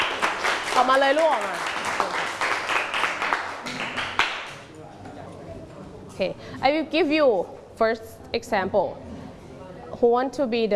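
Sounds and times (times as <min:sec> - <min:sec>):
hands clapping: 0:00.0 - 0:04.7
speech: 0:00.8 - 0:01.7, 0:06.2 - 0:09.1, 0:10.0 - 0:10.7.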